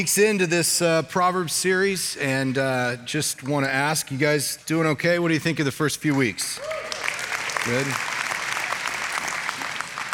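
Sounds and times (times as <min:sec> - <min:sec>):
speech: 0:00.0 - 0:06.8, 0:07.6 - 0:08.1
audience applause at a church gathering: 0:06.6 - 0:10.1.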